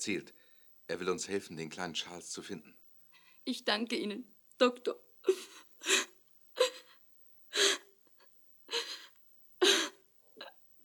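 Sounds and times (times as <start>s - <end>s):
speech: 0.0s - 2.8s, 3.4s - 6.0s
woman sobbing: 5.2s - 7.9s, 8.7s - 10.0s.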